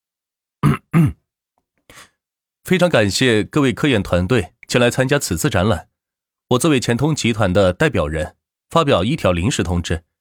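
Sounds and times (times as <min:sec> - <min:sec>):
throat clearing: 0:00.6 - 0:01.2
speech: 0:02.7 - 0:05.9, 0:06.5 - 0:10.1.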